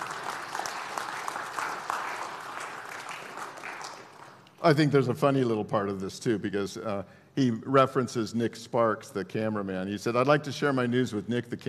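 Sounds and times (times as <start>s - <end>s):
audience applause: 0.0s - 4.4s
speech: 4.6s - 11.6s.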